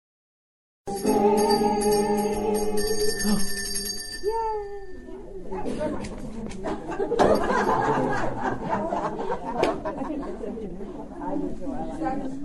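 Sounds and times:
small silver bells jingling: 0.9 - 5.4
laughter: 5.5 - 12.3.

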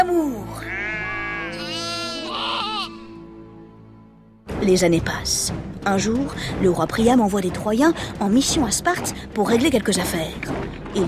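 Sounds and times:
sheep bleating: 0.6 - 3.2
speech: 4.6 - 11.0.

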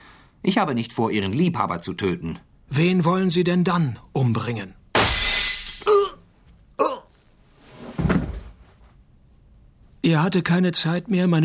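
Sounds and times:
speech: 0.4 - 4.8, 10.1 - 11.4
bullet shattering shop window glass: 5.0 - 5.9.

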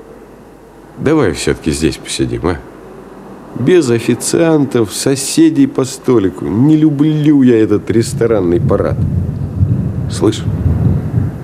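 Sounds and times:
speech: 1.0 - 2.7, 3.6 - 9.5, 10.1 - 10.8
thunder rumbling: 6.3 - 11.4.

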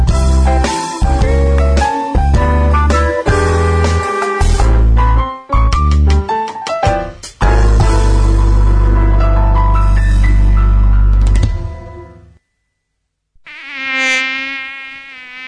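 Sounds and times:
music in a dengue awareness radio spot: 0.0 - 12.4
dengue-carrying mosquito buzzing: 13.4 - 15.4.

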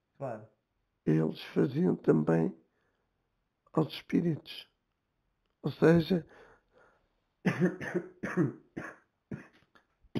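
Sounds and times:
speech: 0.2 - 2.6, 3.7 - 4.7, 5.6 - 6.4, 7.4 - 9.5
man coughing: 7.5 - 9.6.

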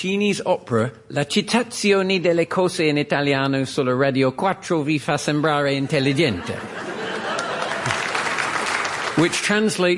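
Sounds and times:
speech: 0.0 - 6.9, 9.2 - 9.9
laughter: 5.8 - 9.3
audience applause: 7.0 - 9.9.

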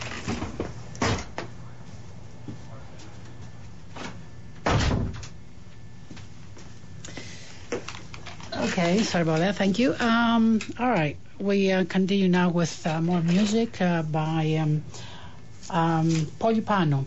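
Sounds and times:
door being closed: 4.0 - 5.4
speech: 8.8 - 15.1, 15.7 - 17.0.

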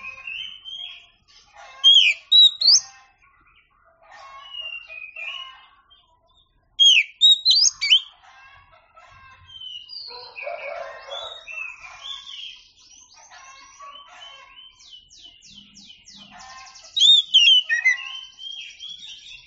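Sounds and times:
Oriental magpie-robin singing: 0.0 - 3.6, 6.8 - 8.1, 9.4 - 19.4.

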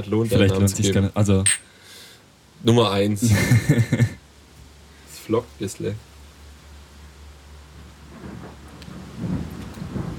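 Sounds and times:
speech: 0.0 - 1.7, 2.6 - 4.2, 5.3 - 6.1
thunder rumbling: 8.0 - 10.1.

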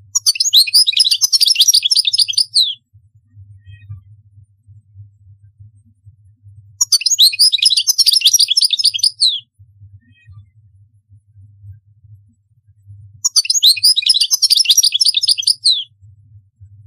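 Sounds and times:
European goldfinch song: 0.2 - 2.8, 6.8 - 9.4, 13.2 - 15.9.

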